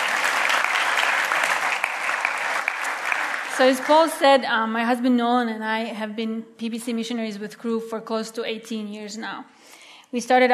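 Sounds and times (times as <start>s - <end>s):
audience applause welcoming a woman speaker at a church ministry gathering: 0.0s - 4.2s
speech: 3.6s - 10.5s.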